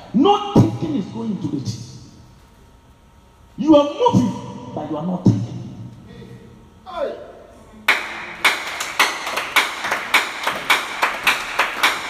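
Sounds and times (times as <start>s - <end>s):
speech: 0.1s - 0.6s, 1.2s - 1.9s, 3.6s - 5.4s
congregation clapping at a Wednesday church teaching service: 7.9s - 12.0s.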